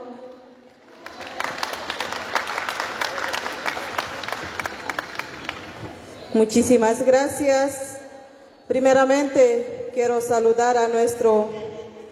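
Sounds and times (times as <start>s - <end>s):
audience applause: 0.7s - 6.2s
speech: 6.3s - 7.8s, 8.7s - 11.6s.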